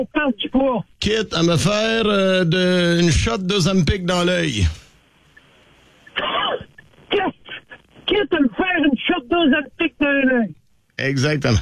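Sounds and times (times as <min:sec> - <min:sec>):
speech: 0:00.0 - 0:04.8, 0:08.2 - 0:11.6
person coughing from choking: 0:06.2 - 0:07.8.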